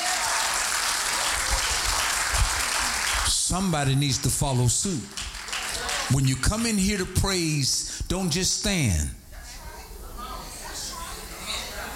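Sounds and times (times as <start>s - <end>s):
audience clapping hands: 0.0s - 6.9s
speech: 3.5s - 5.3s, 6.1s - 9.2s.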